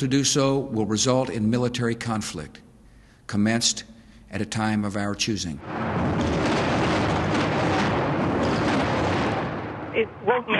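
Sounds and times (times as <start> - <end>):
speech: 0.0 - 2.7, 3.3 - 6.2, 10.0 - 10.5
anti-aircraft gunfire: 5.6 - 10.5
explosions: 5.6 - 10.5.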